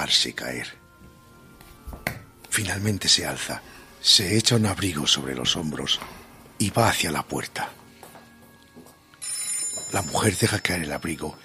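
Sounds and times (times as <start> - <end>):
speech: 0.0 - 0.8, 2.6 - 7.8, 9.9 - 11.4
telephone bell ringing: 9.2 - 11.4.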